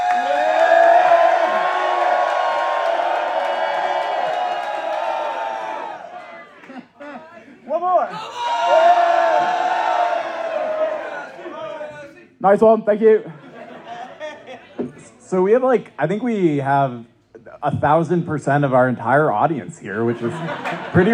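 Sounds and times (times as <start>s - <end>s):
live audience cheering and whooping at a taped show in Minneapolis: 0.0s - 6.7s, 8.1s - 11.9s
laughter: 6.4s - 7.6s, 13.2s - 15.2s, 19.9s - 21.1s
speech: 12.4s - 13.4s, 15.3s - 21.1s.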